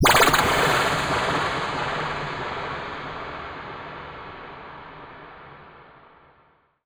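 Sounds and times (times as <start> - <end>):
techno sound effect: 0.0 - 2.3.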